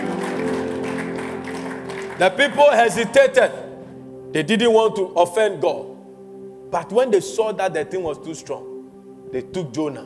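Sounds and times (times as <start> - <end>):
audience clapping: 0.0 - 3.6
sustained musical tones: 0.0 - 10.0
speech: 2.2 - 3.6, 4.3 - 5.9, 6.7 - 8.7, 9.3 - 10.0.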